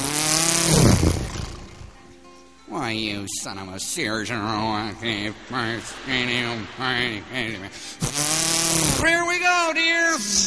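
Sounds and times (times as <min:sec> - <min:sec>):
small boat motor starting: 0:00.0 - 0:02.0, 0:07.8 - 0:09.1
speech: 0:02.9 - 0:10.4.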